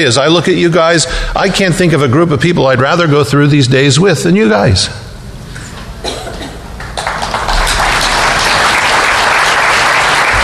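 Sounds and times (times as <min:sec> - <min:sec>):
speech: 0:00.0 - 0:05.0
audience applause: 0:06.8 - 0:10.4.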